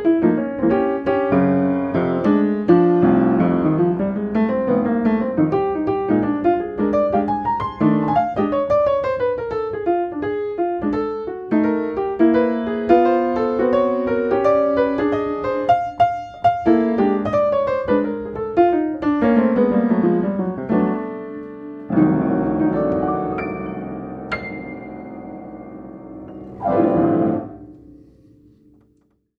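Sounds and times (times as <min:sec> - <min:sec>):
blues piano improvisation: 0:00.0 - 0:29.3.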